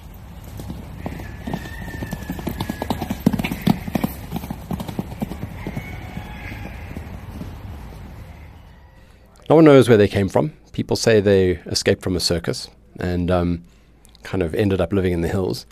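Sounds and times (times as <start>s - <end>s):
wild horses hooves clip-clopping: 0.0s - 8.7s
wild horses whinnying: 0.5s - 9.2s
speech: 9.5s - 15.6s.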